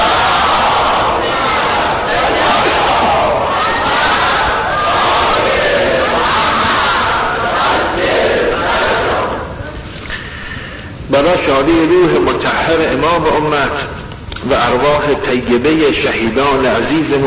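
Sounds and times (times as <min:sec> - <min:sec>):
large crowd loudly reciting salawat in unison at a religious gathering: 0:00.0 - 0:09.6
speech: 0:11.6 - 0:17.2.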